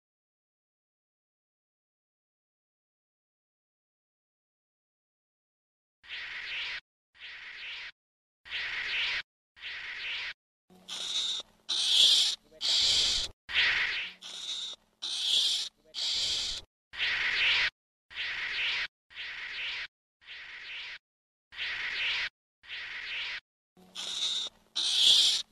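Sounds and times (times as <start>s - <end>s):
ferret-badger calling: 8.5s - 21.0s, 21.6s - 25.5s.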